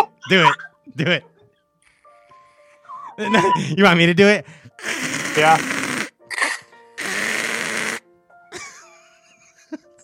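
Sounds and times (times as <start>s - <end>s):
speech: 0.3s - 1.3s, 3.2s - 5.8s
voice imitating a pterodactyl-like screech: 4.8s - 8.0s.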